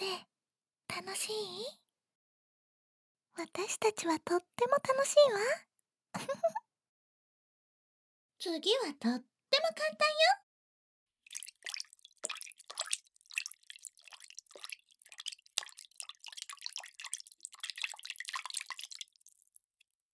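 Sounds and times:
speech: 0.9s - 1.8s, 3.4s - 6.6s, 8.4s - 10.4s
water dripping: 11.2s - 20.0s.

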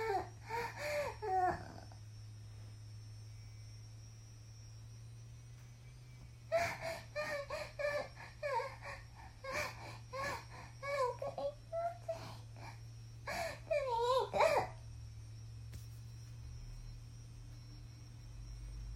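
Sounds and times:
22-year-old woman moaning and climaxing: 0.0s - 2.0s, 6.5s - 14.8s.

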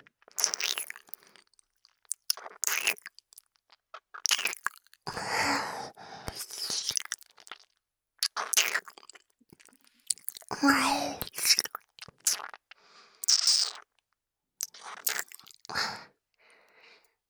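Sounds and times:
ear licking: 0.2s - 5.0s, 6.3s - 14.0s, 14.6s - 15.7s.

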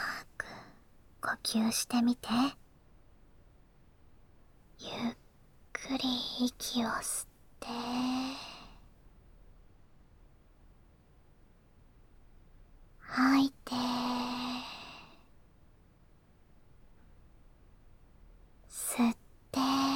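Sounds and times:
ASMR whispering: 0.0s - 2.6s, 4.8s - 8.8s, 13.0s - 15.3s, 18.7s - 19.9s.

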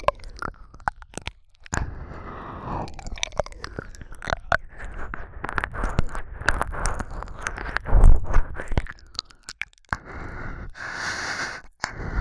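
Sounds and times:
ear licking: 0.0s - 12.1s.

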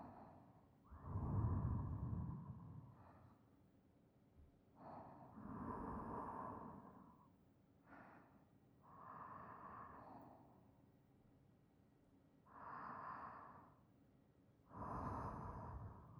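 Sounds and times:
sleeping breath beside listener: 0.0s - 3.4s, 4.8s - 7.2s, 7.8s - 10.7s, 12.5s - 13.9s, 14.7s - 16.1s.

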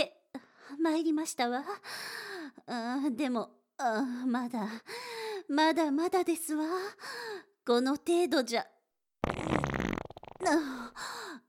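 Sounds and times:
speech: 0.8s - 8.8s, 10.5s - 11.1s
fart: 9.2s - 10.6s.

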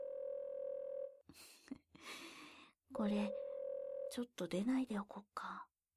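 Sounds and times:
Japanese-style telephone ringback tone of an unanswered call: 0.0s - 1.2s, 3.2s - 4.2s
speech: 1.3s - 2.2s, 2.9s - 3.4s, 4.2s - 5.7s.

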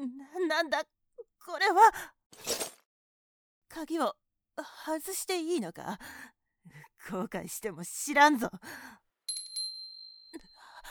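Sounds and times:
speech: 0.5s - 2.6s, 3.7s - 9.0s
small bell ringing: 9.3s - 10.6s.

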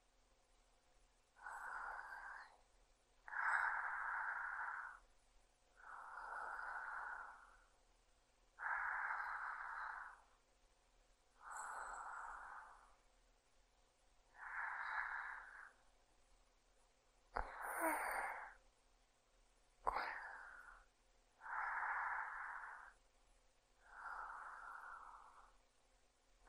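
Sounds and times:
sleeping breath: 1.4s - 2.6s, 3.2s - 5.1s, 5.8s - 7.7s, 8.6s - 10.4s, 11.4s - 13.0s, 14.3s - 15.8s, 17.4s - 18.6s, 19.8s - 23.0s, 23.8s - 25.6s.

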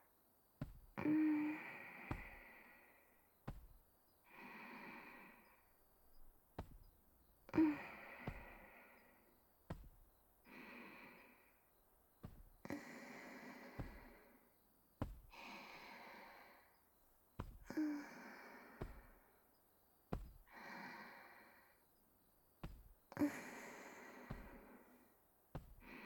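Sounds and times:
gentle back and shoulder massage on a futon: 0.6s - 4.2s, 4.9s - 16.0s, 16.8s - 18.0s, 20.0s - 20.5s, 22.6s - 25.9s.

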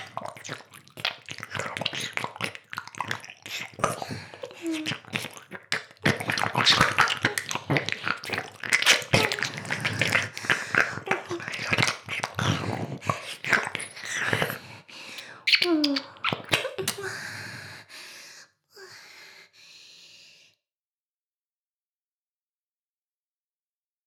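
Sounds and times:
ear licking on both sides at once ASMR: 0.0s - 17.1s.

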